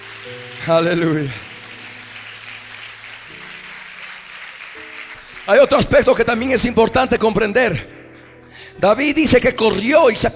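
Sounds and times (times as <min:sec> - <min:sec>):
audience applause: 0:00.0 - 0:06.2
organ or keyboard chords: 0:00.0 - 0:09.2
speech: 0:00.2 - 0:01.5, 0:05.5 - 0:10.3.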